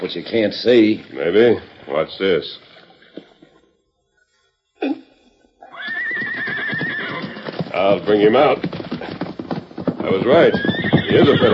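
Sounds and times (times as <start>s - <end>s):
speech: 0.0s - 2.7s, 7.8s - 8.8s, 10.0s - 11.5s
horse whinnying: 5.6s - 11.5s
horse snorting: 7.6s - 11.5s.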